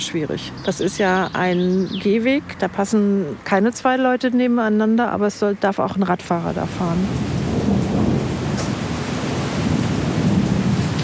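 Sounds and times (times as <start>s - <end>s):
speech: 0.0s - 7.4s
pouring rain in Mülheim an der Ruhr: 0.0s - 11.0s
thunder: 7.2s - 11.0s.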